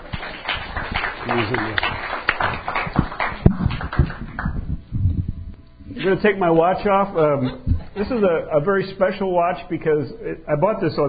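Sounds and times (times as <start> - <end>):
audience clapping: 0.0 - 4.9
speech: 1.3 - 3.0, 6.0 - 11.0.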